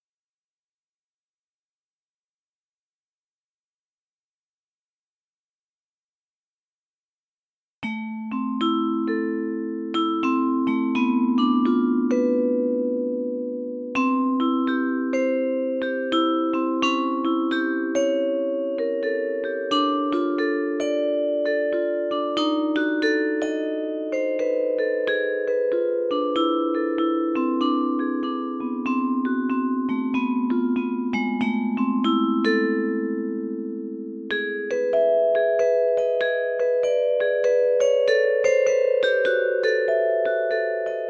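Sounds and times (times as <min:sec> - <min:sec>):
vibraphone: 0:07.8 - 0:13.2, 0:14.0 - 0:41.0.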